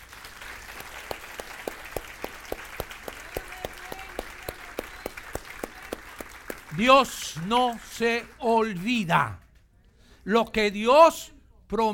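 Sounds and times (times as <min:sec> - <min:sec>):
audience applause: 0:00.0 - 0:09.4
speech: 0:06.8 - 0:09.4, 0:10.3 - 0:11.9.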